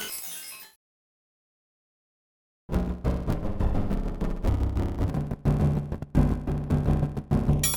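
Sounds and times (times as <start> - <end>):
L-system synthesized sonorities: 2.8 - 7.6.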